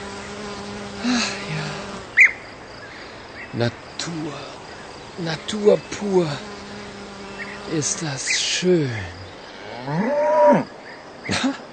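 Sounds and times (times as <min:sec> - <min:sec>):
speech: 0:03.6 - 0:04.6, 0:05.2 - 0:06.5, 0:07.7 - 0:09.2, 0:09.8 - 0:11.7
cow mooing: 0:09.6 - 0:10.7.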